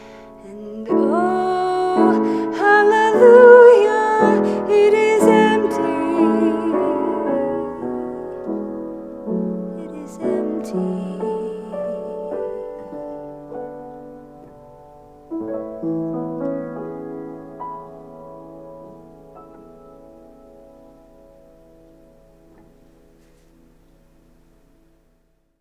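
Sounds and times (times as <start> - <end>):
vocal solo: 0.0 - 13.6.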